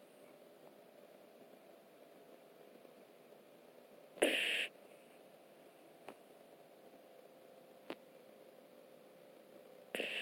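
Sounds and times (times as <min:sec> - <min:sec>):
puppy snoring: 0:04.2 - 0:04.7, 0:09.9 - 0:10.1.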